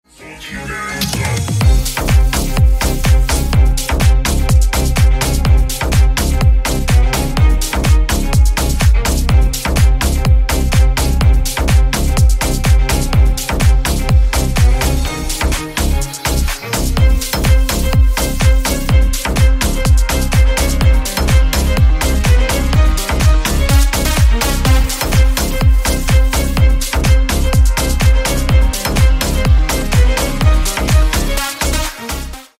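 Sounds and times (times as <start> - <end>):
dance music: 0.1 - 32.5.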